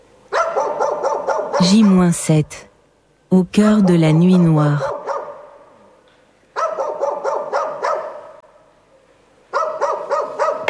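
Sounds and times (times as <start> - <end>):
wild dogs or coyotes barking at night: 0.3 - 2.2, 3.7 - 5.8, 6.5 - 8.5, 9.5 - 10.6
speech: 1.6 - 2.7, 3.3 - 4.9.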